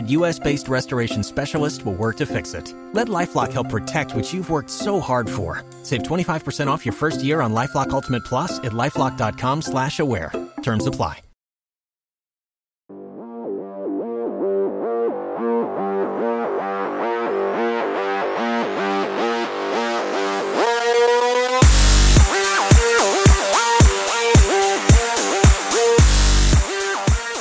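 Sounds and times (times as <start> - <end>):
speech: 0.1 - 11.2
thumping bass music: 13.0 - 27.3.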